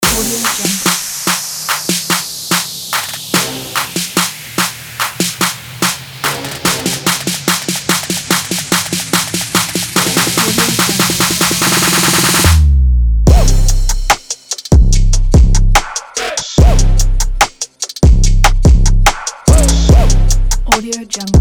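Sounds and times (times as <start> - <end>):
rap music: 0.0 - 12.6, 13.3 - 21.4.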